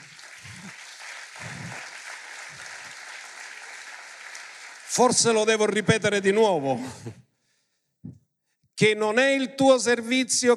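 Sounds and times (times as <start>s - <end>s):
modest group applauding: 0.0s - 5.9s
speech: 5.0s - 7.2s, 8.8s - 10.5s.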